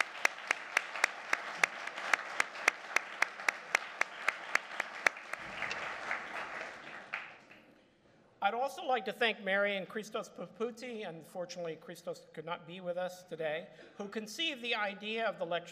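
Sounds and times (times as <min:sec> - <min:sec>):
audience applause: 0:00.0 - 0:07.7
speech: 0:08.5 - 0:15.7.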